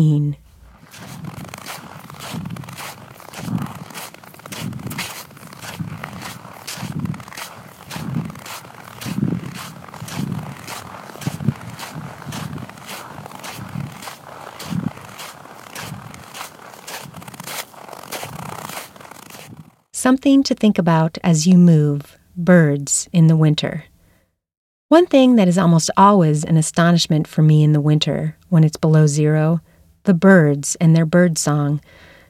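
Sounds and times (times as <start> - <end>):
speech: 0.0 - 0.4, 20.0 - 23.9, 24.9 - 32.1
footsteps crunching snow: 0.4 - 19.9.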